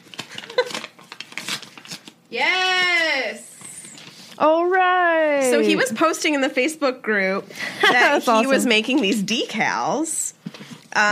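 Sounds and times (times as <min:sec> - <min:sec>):
envelope torn open by hand: 0:00.0 - 0:03.0
speech: 0:02.3 - 0:02.6, 0:05.4 - 0:10.2, 0:11.0 - 0:11.1.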